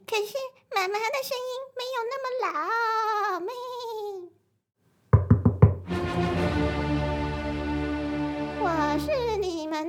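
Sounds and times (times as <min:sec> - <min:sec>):
speech: 0:00.2 - 0:03.9
knocking on a door: 0:05.2 - 0:05.9
sustained music: 0:05.2 - 0:09.7.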